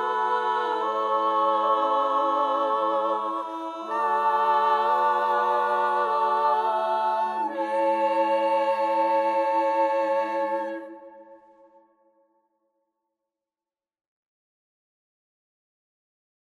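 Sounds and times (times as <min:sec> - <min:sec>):
morning hymn: 0:00.0 - 0:11.8.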